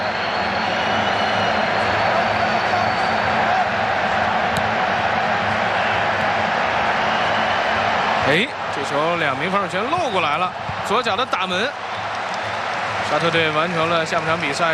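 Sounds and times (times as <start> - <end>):
football fans booing in a stadium during a Saudi Arabia national team match: 0.0 - 14.7
speech: 8.3 - 11.9, 13.1 - 14.7.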